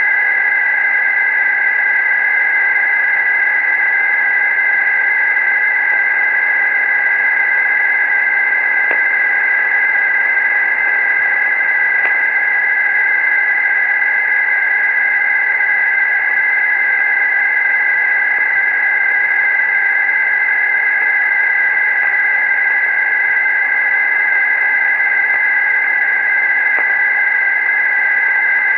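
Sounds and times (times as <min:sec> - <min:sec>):
power line interference 60Hz comb in SSB radio reception at 23 kHz: 0:00.0 - 0:28.7.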